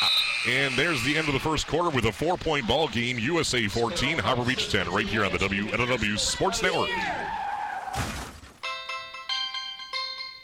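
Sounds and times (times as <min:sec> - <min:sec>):
tire squeal: 0:00.0 - 0:01.4, 0:07.2 - 0:08.0
speech: 0:00.4 - 0:07.4
car crashing into a ditch with breaking glass: 0:07.9 - 0:08.6.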